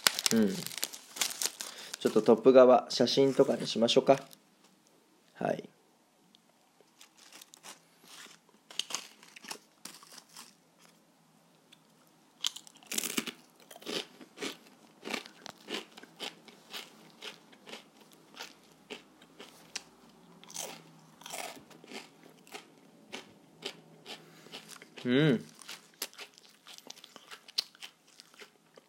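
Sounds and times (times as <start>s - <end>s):
chewing Hokkaido sweet-shrimp salt-flavoured shrimp crackers: 0.0s - 2.2s, 6.8s - 11.0s, 12.4s - 28.8s
speech: 0.3s - 0.8s, 2.0s - 4.4s.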